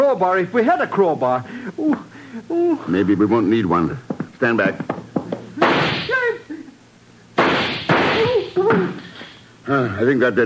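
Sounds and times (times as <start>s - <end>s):
speech: 0.1s - 4.9s, 8.6s - 10.4s
gunshots fired at a door lock: 5.6s - 6.2s, 7.4s - 8.4s.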